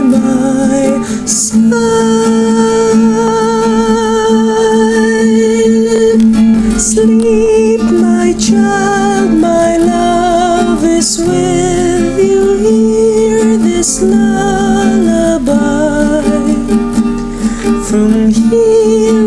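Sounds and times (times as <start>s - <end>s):
older woman singing a lullaby: 0.0s - 17.1s, 17.8s - 19.2s.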